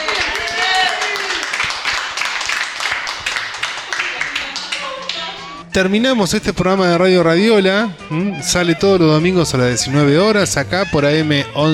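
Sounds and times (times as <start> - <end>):
studio audience applauding: 0.0 - 5.5
speech: 5.8 - 11.7.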